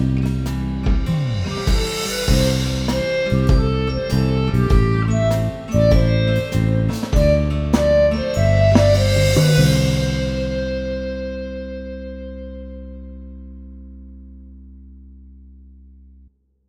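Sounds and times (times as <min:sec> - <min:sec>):
karaoke backing track: 0:00.0 - 0:11.7.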